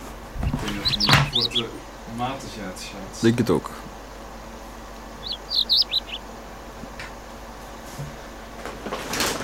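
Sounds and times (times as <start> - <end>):
lark singing: 0.4 - 1.8, 5.1 - 6.4
speech: 1.0 - 3.9.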